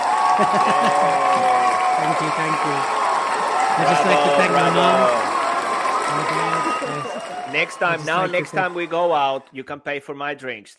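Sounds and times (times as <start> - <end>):
voices whooping and cheering: 0.0 - 9.4
crowd clapping: 0.0 - 9.5
laughter: 0.1 - 2.8, 3.7 - 9.4
speech: 0.4 - 3.0, 3.8 - 5.3, 6.1 - 10.7.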